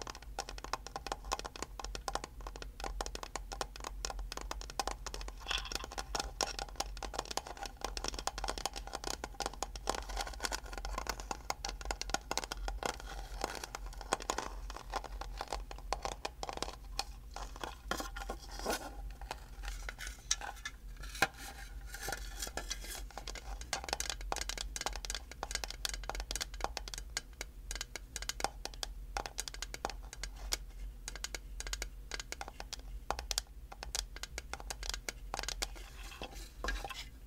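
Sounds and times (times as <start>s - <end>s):
tapping: 0.0s - 37.1s
scratching: 5.0s - 23.8s, 35.6s - 37.2s.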